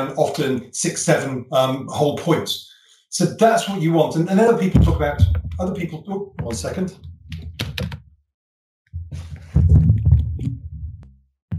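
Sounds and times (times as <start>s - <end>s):
speech: 0.0s - 7.1s
microphone being knocked over: 4.7s - 5.8s, 6.4s - 8.0s, 8.9s - 11.5s.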